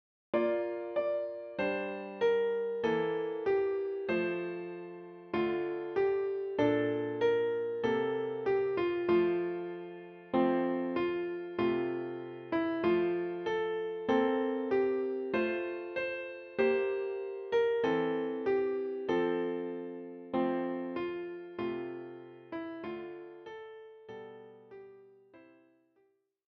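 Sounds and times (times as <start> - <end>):
piano: 0.3 - 25.9.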